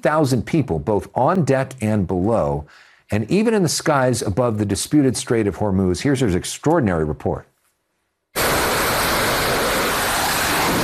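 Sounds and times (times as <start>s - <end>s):
speech: 0.0s - 7.5s
fighter jet engine roar: 8.4s - 10.8s.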